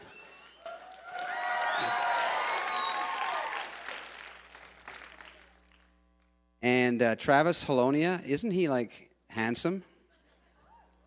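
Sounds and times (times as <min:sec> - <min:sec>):
voices cheering: 0:00.0 - 0:04.0
lukewarm audience applause: 0:00.0 - 0:05.8
speech: 0:06.6 - 0:09.9.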